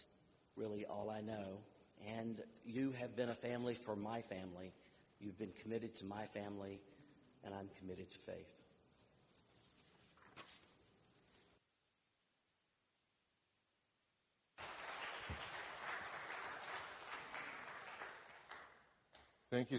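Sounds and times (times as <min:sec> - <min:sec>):
speech: 0:00.6 - 0:08.6, 0:19.5 - 0:19.7
audience clapping after a temple talk: 0:14.6 - 0:19.4.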